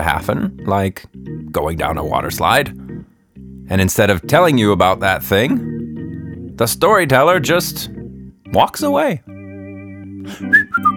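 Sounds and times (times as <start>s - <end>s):
speech: 0.0s - 2.8s, 3.7s - 5.7s, 6.6s - 7.9s, 8.5s - 9.3s, 10.2s - 10.9s
person whistling bird call imitation: 10.3s - 10.9s.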